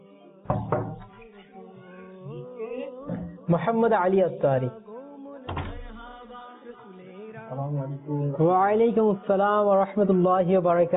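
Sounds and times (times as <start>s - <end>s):
knocking on a door: 0.5s - 1.1s, 5.5s - 6.0s
speech: 3.5s - 4.8s, 7.8s - 10.9s.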